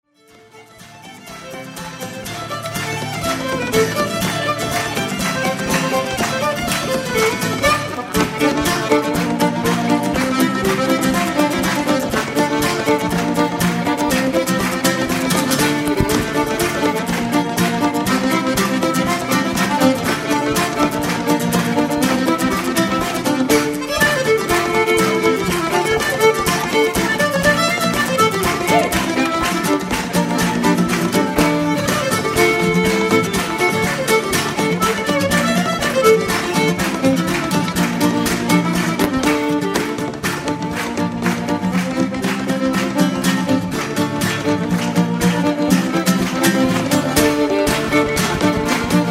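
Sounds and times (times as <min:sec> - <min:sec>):
live instrumental music: 0:00.0 - 0:49.0.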